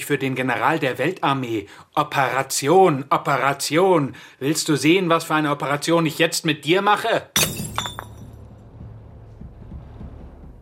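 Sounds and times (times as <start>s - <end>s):
speech: 0.1s - 8.1s
beer bottle smashing: 7.4s - 8.4s
low quiet rumble: 8.0s - 10.6s.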